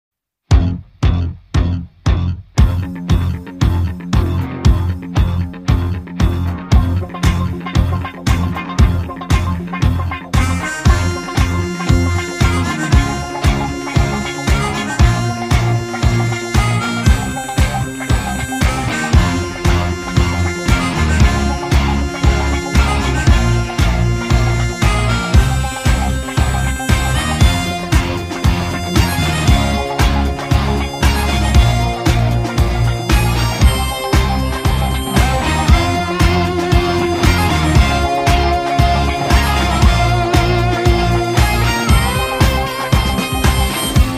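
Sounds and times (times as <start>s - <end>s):
war movie instrumental theme music: 0.5s - 44.1s.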